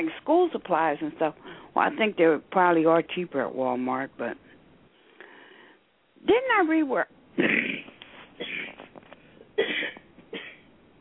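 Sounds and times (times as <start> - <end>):
speech: 0.0 - 4.4, 6.2 - 7.8
person coughing: 7.4 - 8.9, 9.6 - 10.7.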